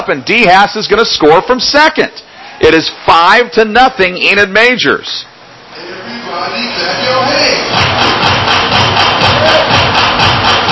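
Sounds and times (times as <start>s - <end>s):
speech: 0.0s - 8.1s
baseball crowd cheering: 7.6s - 10.7s.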